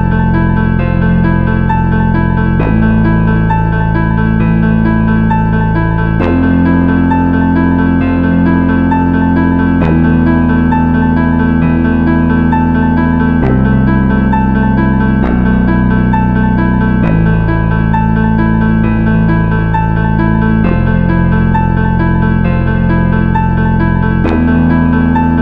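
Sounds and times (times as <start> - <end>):
sub bass: 0.0 - 25.4.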